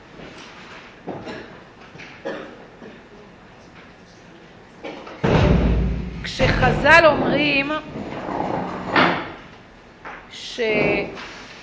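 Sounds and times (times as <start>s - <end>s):
door closing with a heavy low thud: 5.2s - 7.4s
speech: 6.4s - 8.1s, 10.6s - 11.3s.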